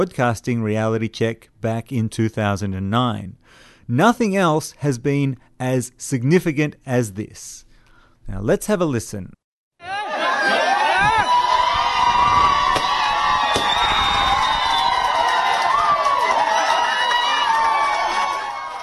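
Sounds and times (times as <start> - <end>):
speech: 0.0 - 7.6, 8.3 - 9.4
crowd screaming with joy as India decriminalizes homosexuality: 9.8 - 18.8.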